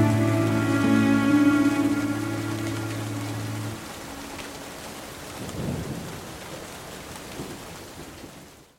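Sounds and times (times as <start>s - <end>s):
sad violin music: 0.0s - 4.6s.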